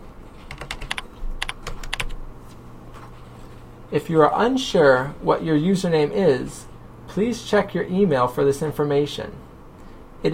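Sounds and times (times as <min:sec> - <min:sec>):
fingers typing a username on a computer keyboard: 0:00.3 - 0:02.2
speech: 0:03.9 - 0:09.4.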